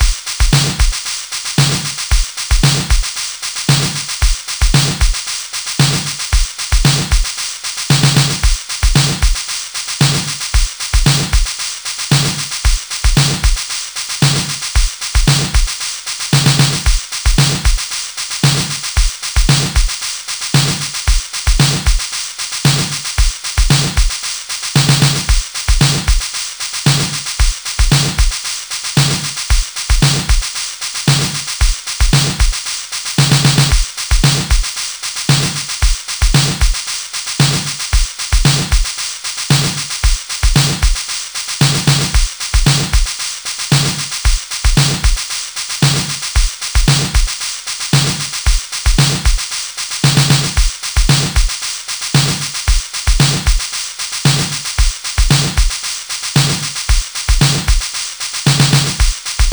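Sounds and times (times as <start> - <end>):
dance rhythm: 0.0 - 1.0, 1.6 - 3.1, 3.7 - 5.2, 5.8 - 7.3, 7.9 - 9.4, 10.0 - 11.5, 12.1 - 13.6, 14.2 - 15.8, 16.4 - 17.8, 18.4 - 19.9, 20.6 - 22.1, 22.7 - 24.2, 24.8 - 26.2, 26.9 - 28.4, 29.0 - 30.5, 31.1 - 32.6, 33.2 - 34.7, 35.3 - 36.8, 37.4 - 38.9, 39.5 - 41.0, 41.6 - 43.1, 43.7 - 45.2, 45.8 - 47.4, 48.0 - 51.6, 52.2 - 55.8, 56.4 - 57.9, 58.5 - 59.5.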